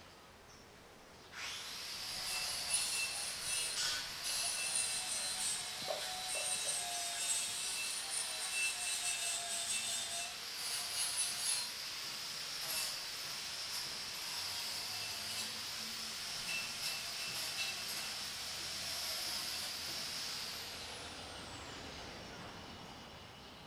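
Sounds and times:
saw: 1.3 - 23.5.

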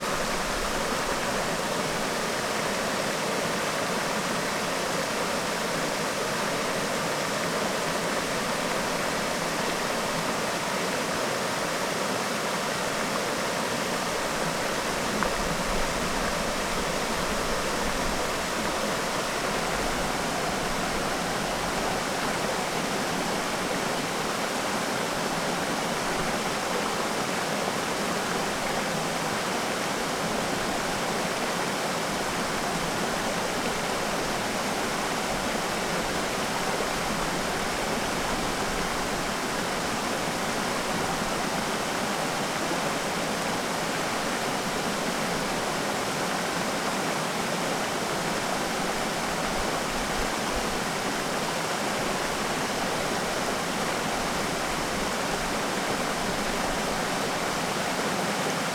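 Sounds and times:
waterfall in Parque Terra Viva: 0.0 - 58.7.

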